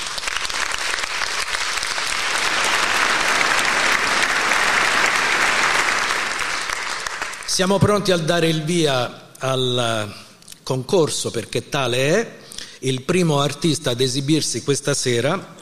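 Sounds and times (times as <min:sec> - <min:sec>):
audience applause: 0:00.0 - 0:07.7
speech: 0:07.6 - 0:15.6.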